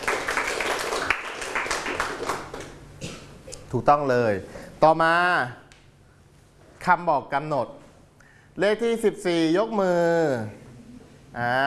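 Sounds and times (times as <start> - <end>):
group of children clapping in a classroom: 0.0 - 2.8
speech: 3.7 - 5.6, 6.8 - 7.8, 8.6 - 10.6, 11.3 - 11.6.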